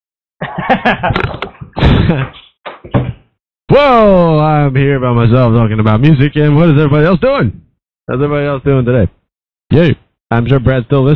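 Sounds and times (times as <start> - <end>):
laughter: 0.4 - 2.4
speech: 0.4 - 11.1
door being closed: 1.1 - 3.3.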